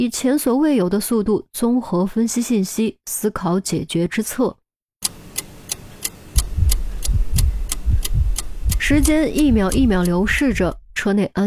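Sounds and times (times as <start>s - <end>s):
speech: 0.0s - 4.6s, 8.8s - 11.4s
heartbeat sound effect: 6.3s - 11.1s.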